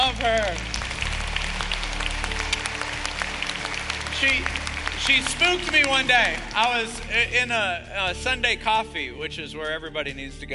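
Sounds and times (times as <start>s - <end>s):
audience applause: 0.0s - 7.5s
speech: 4.2s - 10.5s.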